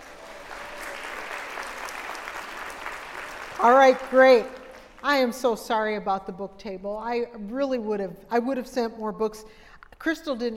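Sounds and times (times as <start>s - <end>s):
crowd applause: 0.0s - 5.0s
speech: 3.6s - 10.5s.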